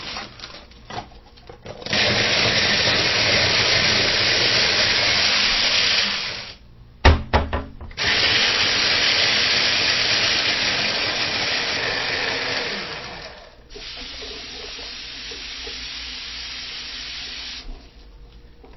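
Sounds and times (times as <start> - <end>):
faucet running while cooking: 1.8 - 6.6, 8.0 - 17.7.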